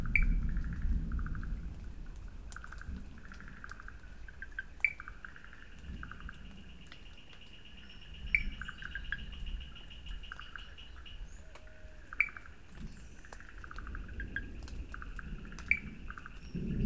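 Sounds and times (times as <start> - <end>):
thunder in Sri Lanka: 0.0 - 3.4, 13.8 - 16.8
Wood Frogs in Sri Lanka: 0.0 - 16.8.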